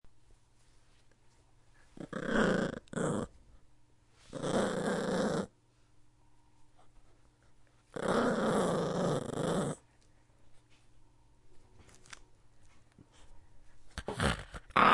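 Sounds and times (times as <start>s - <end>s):
dog growling: 2.0s - 3.3s, 4.3s - 5.5s, 7.9s - 9.8s, 14.0s - 14.9s.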